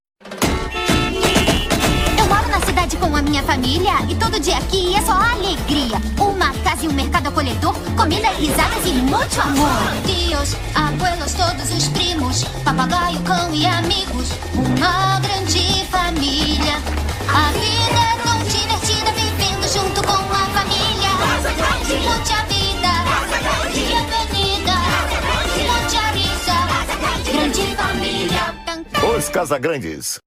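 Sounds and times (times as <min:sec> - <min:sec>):
theme song in Brazilian Portuguese: 0:00.2 - 0:29.9.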